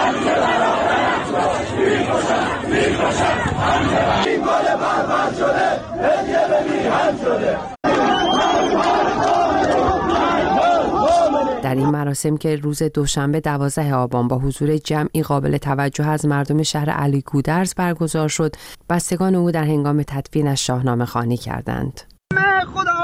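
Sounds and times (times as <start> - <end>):
funeral crowd chanting anti-government slogans: 0.0 - 11.9
speech: 11.8 - 23.0.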